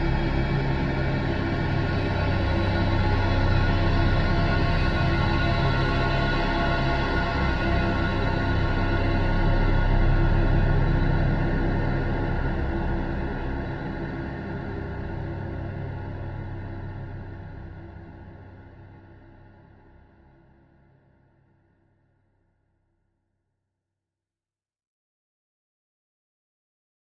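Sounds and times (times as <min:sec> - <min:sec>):
eerie horror music: 0:00.0 - 0:19.9.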